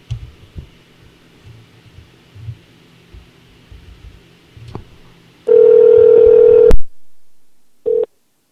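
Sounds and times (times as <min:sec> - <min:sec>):
phone call ringback tone: 0:05.5 - 0:06.8, 0:07.9 - 0:08.1.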